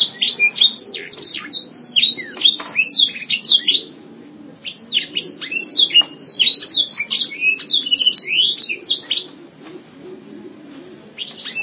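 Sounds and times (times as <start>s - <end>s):
canary singing fast high twittering phrases: 0.0s - 4.0s, 4.6s - 9.4s, 11.2s - 11.6s.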